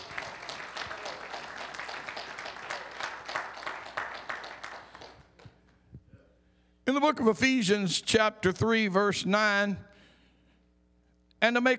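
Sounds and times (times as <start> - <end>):
audience hand clapping in praise: 0.0 - 5.6
speech: 6.9 - 9.9, 11.4 - 11.7.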